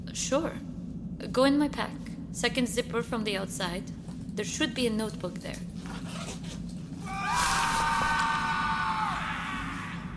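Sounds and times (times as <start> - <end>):
low rumble: 0.0 - 10.1
speech: 0.2 - 5.7
distant scream: 7.0 - 10.1.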